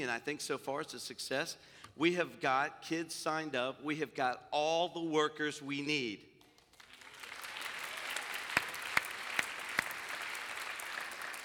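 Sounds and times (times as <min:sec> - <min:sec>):
speech: 0:00.0 - 0:06.3
sharp loud claps: 0:06.4 - 0:11.4
crowd applause: 0:06.7 - 0:11.4.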